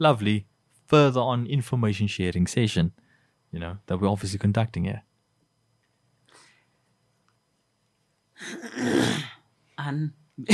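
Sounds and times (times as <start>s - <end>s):
speech: 0.0s - 5.1s, 8.4s - 10.5s
person clearing throat: 8.4s - 9.4s.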